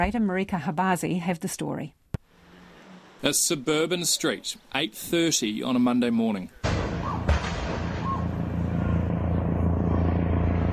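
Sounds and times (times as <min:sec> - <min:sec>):
speech: 0:00.0 - 0:02.0, 0:03.2 - 0:06.6
gunshot: 0:06.6 - 0:09.0
helicopter flying overhead: 0:08.0 - 0:10.7.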